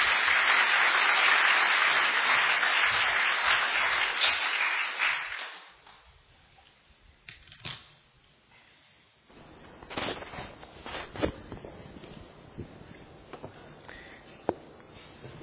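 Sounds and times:
audience applause welcoming a speaker at a lecture event: 0.0 - 5.8.

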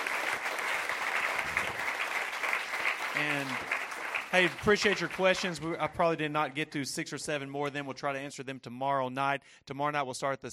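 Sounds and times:
crowd clapping: 0.0 - 5.8
speech: 4.3 - 10.5.

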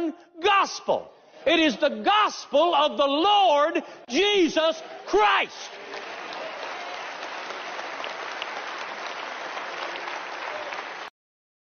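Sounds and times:
speech: 0.1 - 6.0
audience applause: 5.6 - 11.1.

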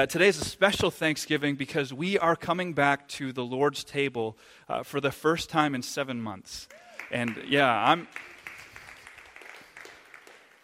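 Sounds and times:
speech: 0.0 - 8.3
muted applause from a church congregation at a Thanksgiving service: 6.7 - 10.6.

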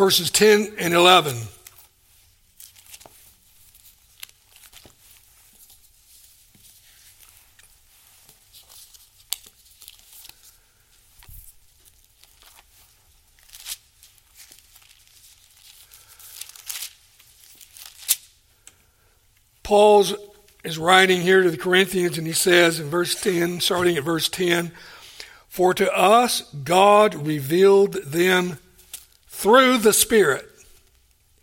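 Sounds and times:
speech: 0.0 - 1.6, 19.7 - 24.9, 25.5 - 28.6, 29.4 - 30.5
Bible pages being turned to 1 Corinthians chapter 2: 0.0 - 18.3, 19.7 - 24.9, 25.7 - 31.3.

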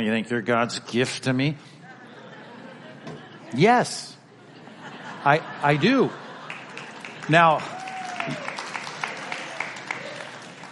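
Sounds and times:
speech: 0.0 - 1.8, 3.5 - 4.2, 5.2 - 6.2, 7.3 - 8.4
laughter: 1.8 - 8.4
church congregation clapping: 6.3 - 10.7.

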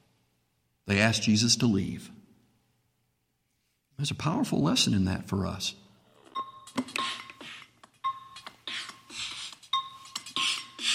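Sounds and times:
speech: 0.9 - 2.2, 4.0 - 5.8
electronic beep of a door lock: 6.2 - 7.4, 8.0 - 8.5, 9.7 - 10.3.

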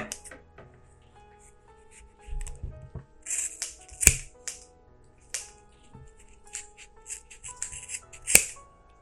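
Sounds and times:
scissors snipping yarn loops of pom-pom: 0.1 - 0.3, 3.2 - 4.7, 5.2 - 5.5, 6.1 - 8.6.

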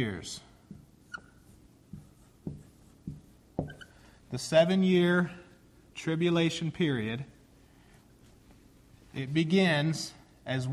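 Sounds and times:
speech: 0.0 - 0.5, 4.3 - 5.4, 6.0 - 7.3, 9.2 - 10.7
pen or marker drawing a short line: 1.1 - 3.8.

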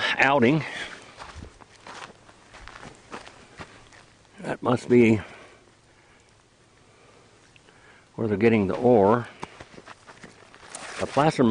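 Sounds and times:
speech: 0.2 - 0.8, 4.4 - 5.3, 8.2 - 9.3, 11.0 - 11.4
crunching footsteps outdoors near a mine: 0.5 - 5.4, 8.6 - 11.4.

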